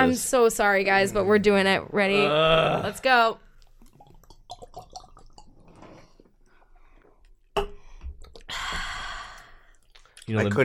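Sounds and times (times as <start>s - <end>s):
speech: 0.0s - 3.4s, 10.3s - 10.6s
swallowing a shot of vodka: 2.2s - 8.8s.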